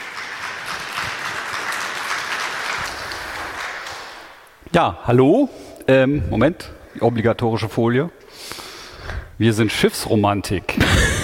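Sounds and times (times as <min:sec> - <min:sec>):
audience applause: 0:00.0 - 0:04.5
speech: 0:04.7 - 0:08.4, 0:09.4 - 0:11.2.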